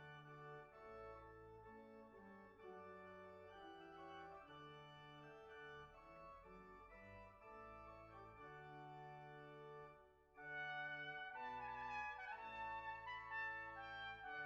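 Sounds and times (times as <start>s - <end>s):
organ playing a voluntary: 0.0s - 14.4s
trumpet playing a voluntary: 10.4s - 14.4s.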